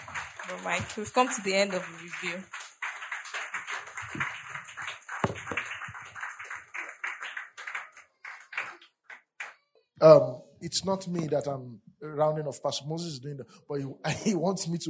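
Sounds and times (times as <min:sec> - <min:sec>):
audience applause: 0:00.0 - 0:09.5
speech: 0:00.5 - 0:02.6, 0:10.0 - 0:14.8.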